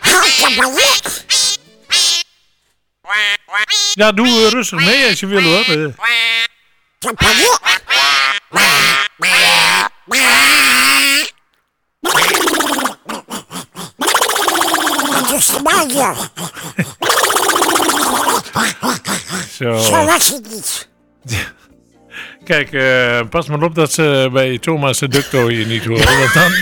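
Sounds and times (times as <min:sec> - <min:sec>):
chorus of Donald Duck voices singing: 0:00.0 - 0:02.3, 0:03.1 - 0:11.3, 0:12.0 - 0:20.4
speech: 0:00.5 - 0:01.2, 0:03.6 - 0:11.2, 0:15.5 - 0:17.0, 0:19.6 - 0:21.6, 0:22.4 - 0:26.6
laughter: 0:14.6 - 0:19.6, 0:25.1 - 0:26.6.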